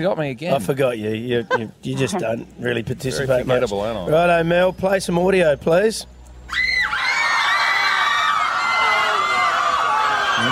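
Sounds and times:
speech: 0.0 - 6.7
crowd screaming: 6.5 - 10.5.

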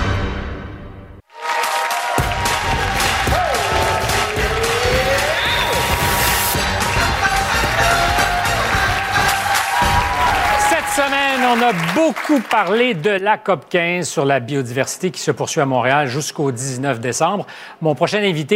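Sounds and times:
studio audience applause: 1.3 - 13.2
speech: 11.4 - 18.5.

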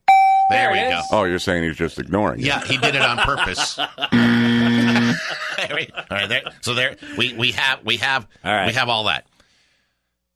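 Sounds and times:
speech: 0.5 - 9.3
laughter: 2.4 - 7.6
game show buzzer: 4.1 - 5.4.

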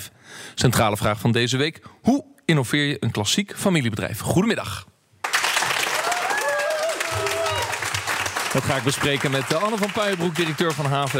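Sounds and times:
speech: 0.0 - 4.9, 8.5 - 11.1
Brabant studio audience applauding: 5.2 - 11.1.

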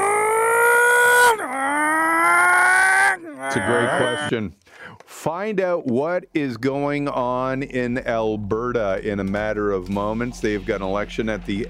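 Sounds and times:
voice imitating a revving car engine: 0.0 - 4.4
speech: 3.6 - 11.6.

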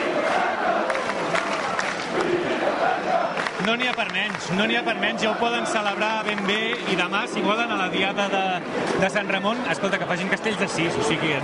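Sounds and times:
crowd chanting: 0.0 - 9.0
speech: 3.7 - 11.4.

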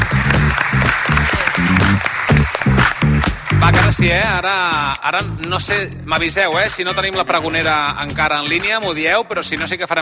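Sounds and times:
audience applause: 0.0 - 4.0
speech: 4.0 - 10.0.

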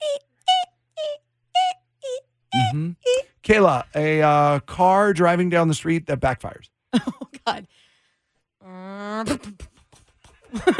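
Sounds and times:
voice imitating a creaking pirate ship: 0.0 - 3.4
speech: 2.6 - 7.8, 8.6 - 9.7, 10.5 - 10.7
laughter: 10.2 - 10.7.

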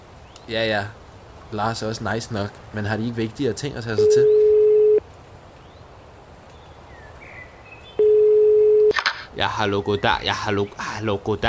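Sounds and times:
speech: 0.5 - 4.4, 9.4 - 11.4
telephone call tone to emergency line: 4.0 - 5.0, 8.0 - 9.0.

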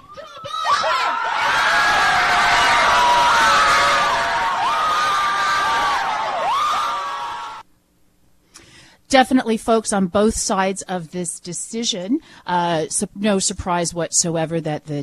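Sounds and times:
crowds cheering outside the Supreme Court in Washington: 0.0 - 7.6
speech: 9.1 - 15.0.

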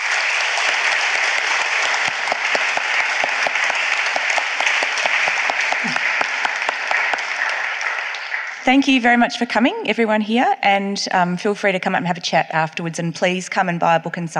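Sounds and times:
audience applause: 0.0 - 9.0
speech: 8.7 - 14.3.

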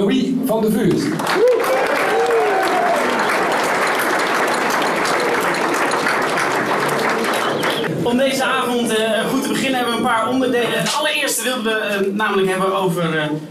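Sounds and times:
speech: 0.1 - 1.5, 8.2 - 13.4
audience applause: 1.1 - 8.0.

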